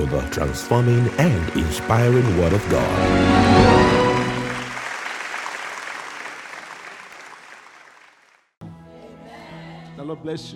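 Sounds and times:
speech: 0.0 - 4.0, 10.2 - 10.5
audience applauding the choir: 0.0 - 8.4.

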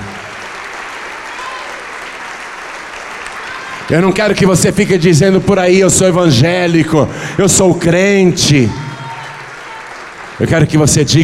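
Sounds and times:
audience applause: 0.0 - 5.0, 8.2 - 11.2
speech: 3.9 - 8.8, 10.4 - 11.2.

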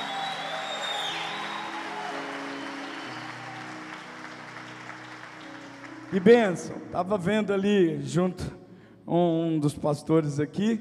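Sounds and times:
audience applauding: 0.0 - 6.8
speech: 6.1 - 10.7.

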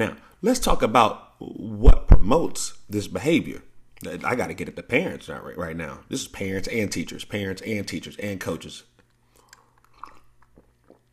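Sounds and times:
speech: 0.0 - 8.9
low steady hum: 0.0 - 11.1
mouth clicks and swallowing: 9.0 - 11.1
person sipping lemon water: 9.0 - 11.1.

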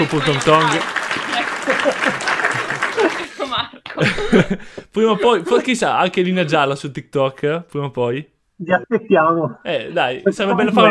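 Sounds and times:
speech: 0.0 - 1.0, 3.5 - 10.8
applause: 0.0 - 4.0
laughter: 0.0 - 5.8.

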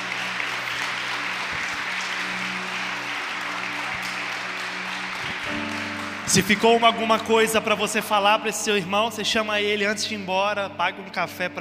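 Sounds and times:
audience applause: 0.0 - 8.1
speech: 6.3 - 11.5.

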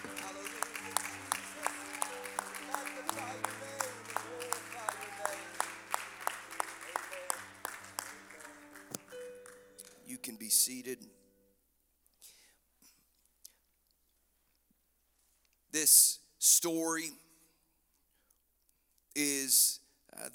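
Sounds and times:
audience clapping hands: 0.0 - 10.3
speech: 10.6 - 11.2, 15.8 - 17.2.

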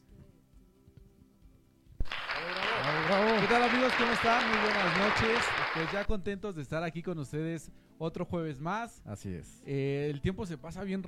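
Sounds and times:
audience applause: 2.0 - 6.1
speech: 3.5 - 11.0.

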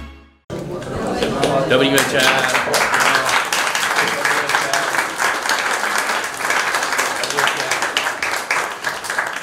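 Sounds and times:
audience applause: 0.6 - 9.4
speech: 1.7 - 2.7.

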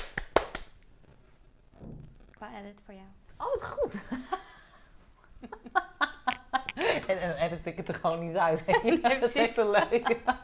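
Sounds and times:
hand clap: 0.0 - 0.8
speech: 2.4 - 4.5, 5.4 - 5.9, 6.8 - 10.4
laughter: 8.6 - 10.4.

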